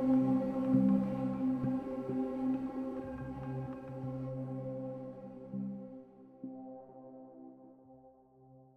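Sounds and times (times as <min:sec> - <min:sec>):
ambient relaxation meditation music: 0:00.0 - 0:08.7.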